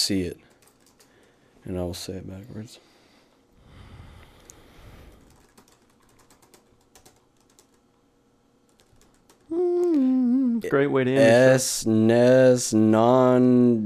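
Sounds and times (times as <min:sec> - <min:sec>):
speech: 0:00.1 - 0:00.5, 0:01.6 - 0:02.9, 0:09.5 - 0:13.8
typing on a computer keyboard: 0:00.5 - 0:01.4, 0:05.2 - 0:07.8, 0:08.7 - 0:09.5.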